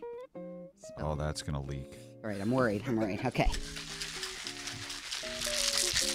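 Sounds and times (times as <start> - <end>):
speech: 0.8 - 3.8
drink being shaken in a large shaker: 3.4 - 6.1.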